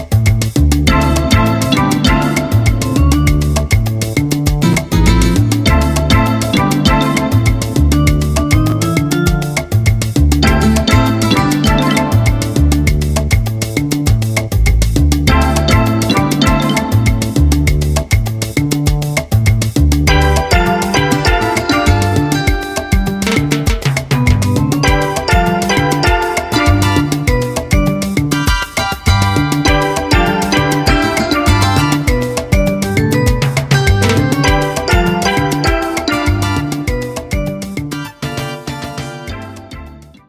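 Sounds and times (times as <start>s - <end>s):
mambo music: 0.0s - 40.2s.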